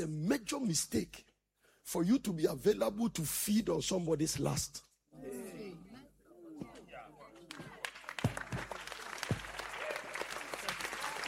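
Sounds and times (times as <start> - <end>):
speech: 0.0 - 1.3, 1.9 - 5.6
audience clapping: 7.3 - 11.2.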